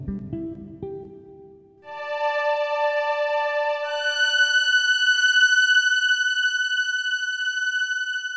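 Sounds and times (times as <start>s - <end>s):
alto solo: 1.9s - 8.3s.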